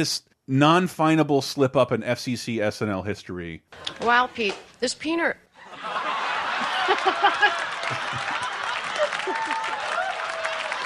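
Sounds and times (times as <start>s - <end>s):
speech: 0.0s - 6.0s, 6.9s - 8.4s
laughter: 5.6s - 10.4s
applause: 6.6s - 10.8s.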